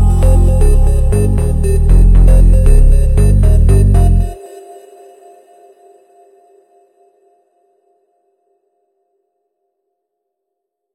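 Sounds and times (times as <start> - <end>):
funk montagem music: 0.0 - 4.4.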